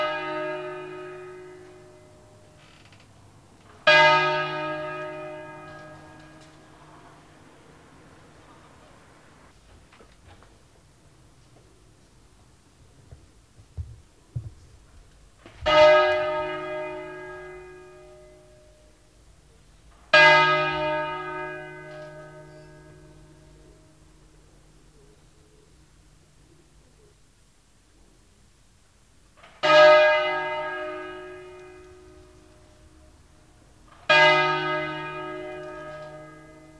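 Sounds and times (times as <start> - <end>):
church bells ringing for a funeral: 0.0 - 2.6, 3.7 - 7.6, 15.6 - 19.2, 20.1 - 24.9, 29.5 - 36.7.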